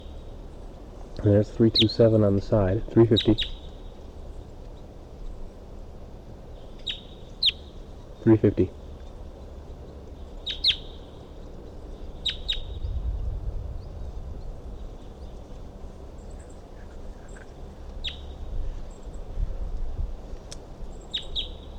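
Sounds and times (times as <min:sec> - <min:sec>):
low rumble: 0:00.0 - 0:21.7
speech: 0:01.2 - 0:03.6, 0:08.2 - 0:08.8
wild bird calling: 0:01.6 - 0:02.1, 0:03.0 - 0:04.9, 0:06.5 - 0:13.1, 0:13.7 - 0:19.2, 0:20.9 - 0:21.7.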